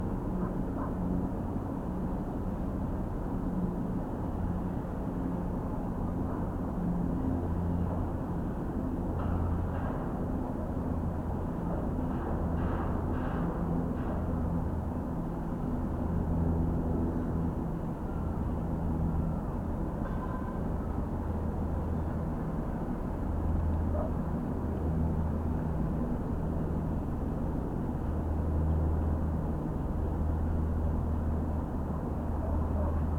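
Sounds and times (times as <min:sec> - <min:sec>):
prop planes overhead: 0:00.0 - 0:33.1
wind at a distant cargo port: 0:00.0 - 0:33.1
distant dogs: 0:32.4 - 0:33.1.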